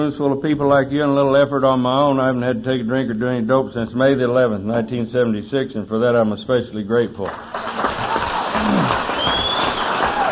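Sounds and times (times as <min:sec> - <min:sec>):
speech: 0:00.0 - 0:08.0
audience clapping: 0:07.2 - 0:10.3.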